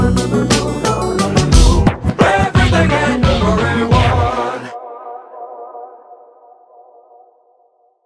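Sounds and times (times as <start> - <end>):
rap music: 0.0 - 6.3.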